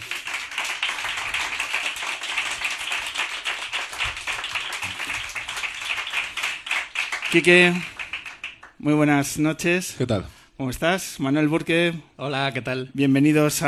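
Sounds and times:
audience applause: 0:00.0 - 0:08.8
speech: 0:07.3 - 0:07.9, 0:08.8 - 0:13.6.

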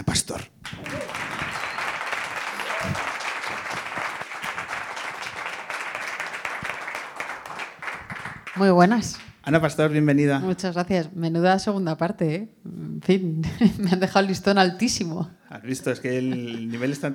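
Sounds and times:
speech: 0:00.2 - 0:00.5, 0:08.6 - 0:17.1
audience applause: 0:00.6 - 0:08.6
laughter: 0:00.8 - 0:03.4, 0:15.7 - 0:17.1.

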